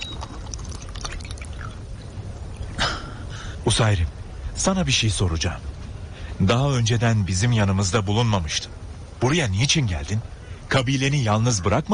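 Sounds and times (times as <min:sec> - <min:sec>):
water being poured for a drink: 0:00.0 - 0:02.8
speech: 0:03.6 - 0:05.7, 0:06.4 - 0:11.9.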